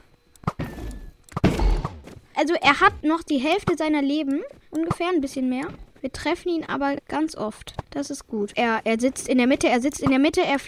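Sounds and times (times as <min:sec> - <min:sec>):
arrows shot from a bow at the Ender Dragon in Minecraft: 0:00.4 - 0:02.2
speech: 0:02.4 - 0:10.6.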